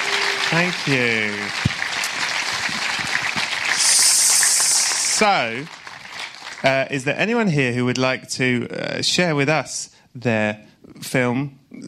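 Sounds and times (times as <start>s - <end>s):
audience applause: 0.0s - 7.0s
speech: 0.5s - 1.7s, 5.2s - 5.8s, 6.6s - 11.8s.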